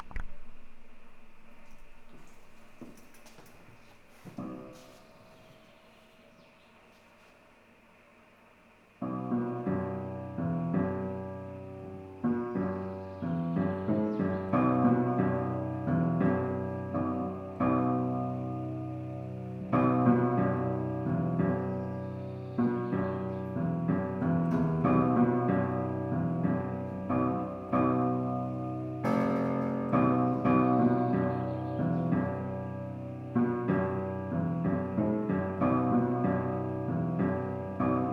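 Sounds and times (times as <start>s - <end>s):
instrumental warm-up music: 9.0s - 38.1s.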